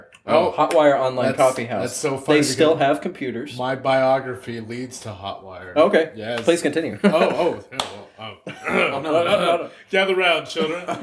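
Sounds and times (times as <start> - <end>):
speech: 0.2 - 11.0
man clapping hands: 0.6 - 0.9, 7.7 - 8.0
laughter: 6.9 - 11.0.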